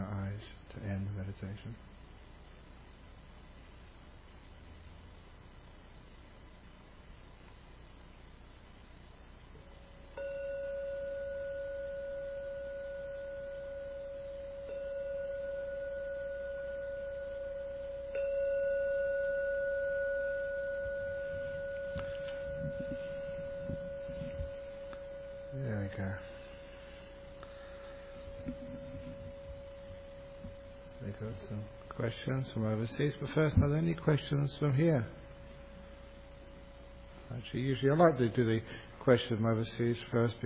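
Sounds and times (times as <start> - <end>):
speech: 1.3 - 2.0, 32.1 - 35.2, 37.5 - 40.4
meditation gong struck, resonating: 10.1 - 35.9.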